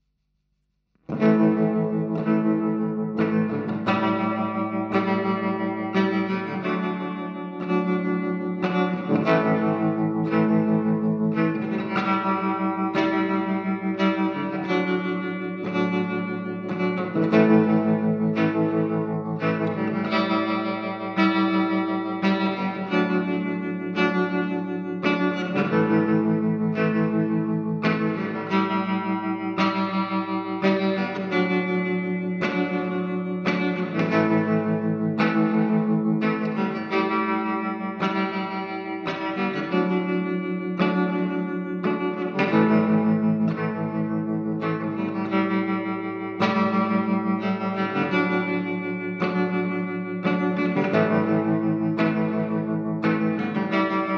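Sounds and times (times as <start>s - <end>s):
guitar: 0.9s - 54.1s.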